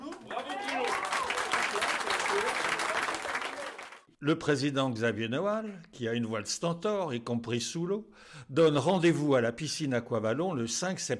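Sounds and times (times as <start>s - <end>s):
audience applause: 0.0s - 4.1s
speech: 4.2s - 11.1s.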